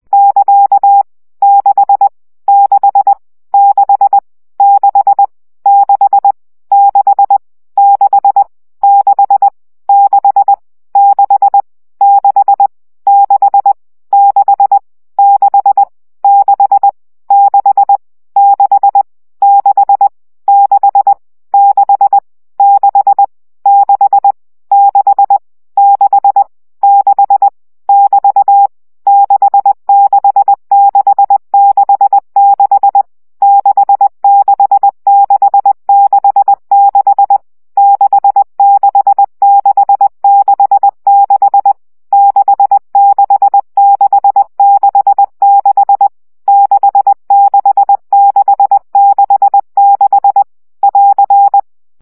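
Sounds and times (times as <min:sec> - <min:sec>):
CW Morse code practice at 17 baud: 0:00.1 - 0:52.0.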